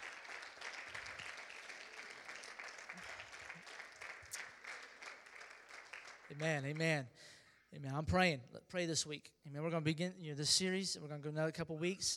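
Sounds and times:
audience hand clapping: 0.0 - 7.0
speech: 6.3 - 12.1.

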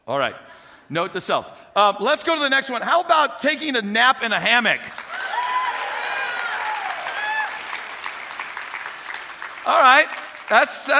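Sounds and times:
speech: 0.1 - 5.1, 9.6 - 10.9
audience clapping: 4.8 - 10.9.

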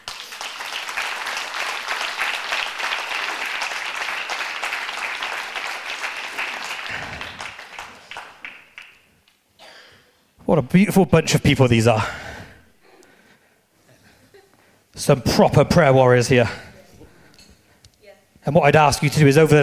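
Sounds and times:
church congregation clapping: 0.0 - 9.4
speech: 10.5 - 12.2, 15.0 - 16.7, 18.5 - 19.6.

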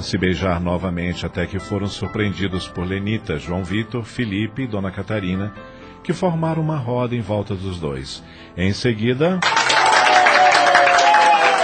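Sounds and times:
speech: 0.0 - 9.9
group applause: 9.4 - 11.6.

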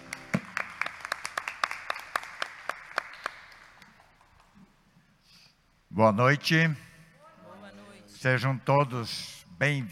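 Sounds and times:
audience clapping: 0.0 - 4.8
speech: 6.0 - 6.8, 8.2 - 9.8.

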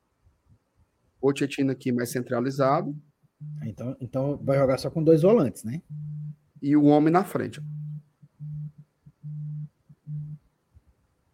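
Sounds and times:
speech: 1.2 - 6.0, 6.6 - 7.8
telephone line signal tones as a call comes in: 2.8 - 3.7, 5.9 - 6.4, 7.4 - 10.4.

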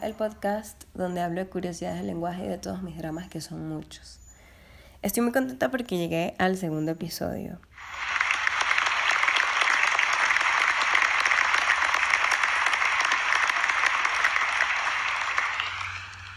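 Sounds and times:
speech: 0.0 - 4.2, 5.0 - 8.2
applause sound effect: 7.8 - 16.3.

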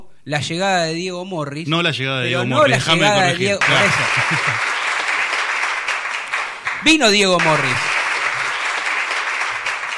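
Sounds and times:
speech: 0.2 - 4.7, 6.8 - 7.9
laughter: 2.3 - 5.0
audience applause: 3.0 - 9.9.

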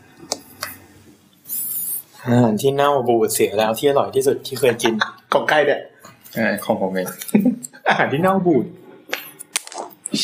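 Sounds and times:
speech: 2.2 - 8.8
paper being handled near the recorder: 9.1 - 10.1.

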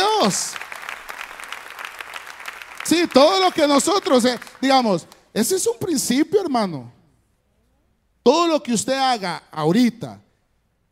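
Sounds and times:
audience applauding: 0.0 - 5.2
speech: 0.2 - 0.6, 2.9 - 7.0, 8.2 - 10.2.

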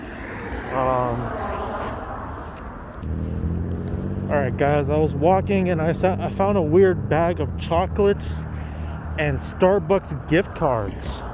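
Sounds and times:
cars driving by on road: 0.0 - 11.3
speech: 4.4 - 8.4, 9.2 - 11.3.

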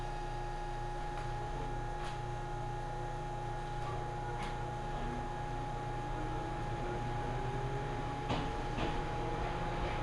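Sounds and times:
constant mid-pitched whine: 0.0 - 10.0
Ohmi Railway train rumble: 6.2 - 10.0.

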